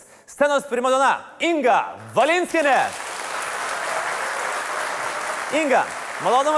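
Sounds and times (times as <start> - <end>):
speech: 0.4 - 3.0, 5.5 - 6.5
studio audience applause welcoming a guest onto a show: 2.5 - 6.5.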